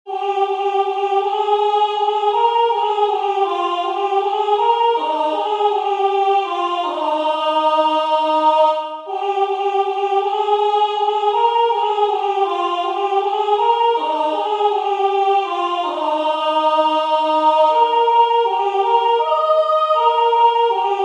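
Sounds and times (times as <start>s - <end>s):
soprano singing: 0.1s - 21.0s.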